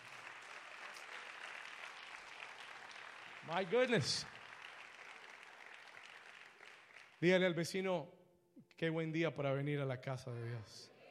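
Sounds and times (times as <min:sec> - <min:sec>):
audience applause: 0:00.0 - 0:07.3
speech: 0:03.4 - 0:04.4, 0:07.2 - 0:08.2, 0:08.8 - 0:10.9.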